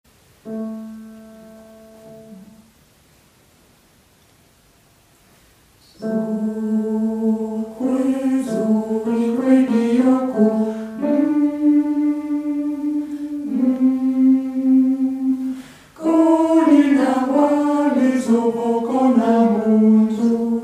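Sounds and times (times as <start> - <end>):
alto voice singing: 5.8 - 20.6.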